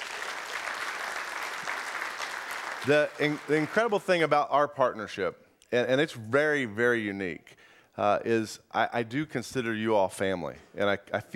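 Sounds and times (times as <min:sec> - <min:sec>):
audience applause: 0:00.0 - 0:04.1
speech: 0:02.8 - 0:11.3.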